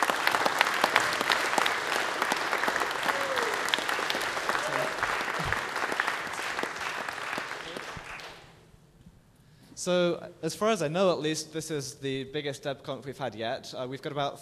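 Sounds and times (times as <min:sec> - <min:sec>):
audience applause: 0:00.0 - 0:08.5
speech: 0:09.8 - 0:14.3.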